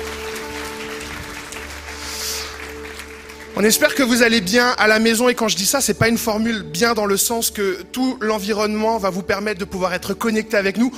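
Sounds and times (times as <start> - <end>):
congregation clapping during a church celebration: 0.0 - 4.8
speech: 3.6 - 10.9.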